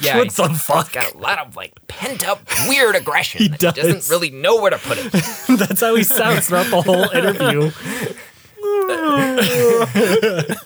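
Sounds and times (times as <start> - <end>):
laughter: 0.0 - 1.1, 2.0 - 10.6
speech: 0.0 - 8.2, 8.9 - 10.6
person yawning: 7.6 - 10.4.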